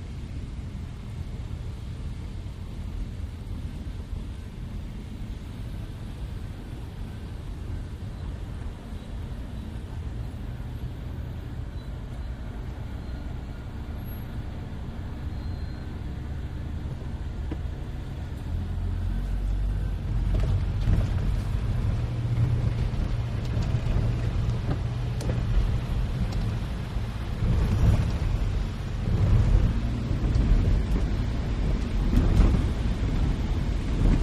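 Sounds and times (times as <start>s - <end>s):
car driving heard from the interior: 0.0s - 34.2s
wet traffic: 0.0s - 34.2s.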